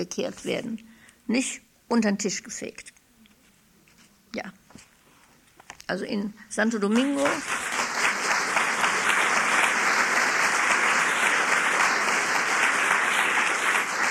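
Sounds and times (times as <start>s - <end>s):
speech: 0.0s - 3.0s, 4.3s - 4.6s, 5.9s - 7.6s
audience clapping: 6.9s - 14.0s.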